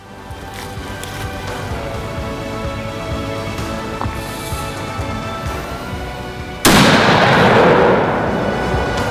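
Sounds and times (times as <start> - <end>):
rifle shot at a sambar stag during a deer hunt: 6.6 - 8.8.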